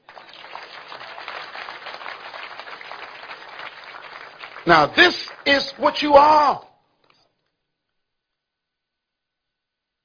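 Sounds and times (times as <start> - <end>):
audience clapping: 0.0 - 6.7
speech: 4.7 - 6.7.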